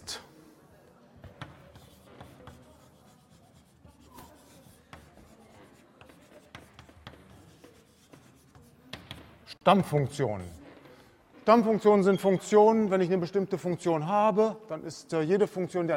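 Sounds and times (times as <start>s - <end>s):
writing a section heading on the board: 1.2s - 9.4s
speech: 9.6s - 10.6s, 11.5s - 15.9s.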